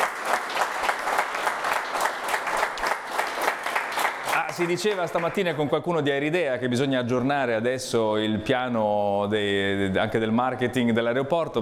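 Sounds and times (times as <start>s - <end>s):
applause: 0.0s - 5.6s
speech: 4.6s - 11.5s.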